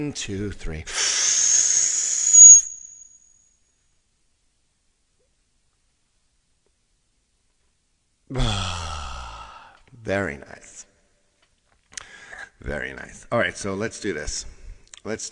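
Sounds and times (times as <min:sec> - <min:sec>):
speech: 0:00.0 - 0:01.3, 0:10.1 - 0:10.7, 0:12.6 - 0:15.2
group taking a deep breath together: 0:08.4 - 0:09.9, 0:12.0 - 0:12.4.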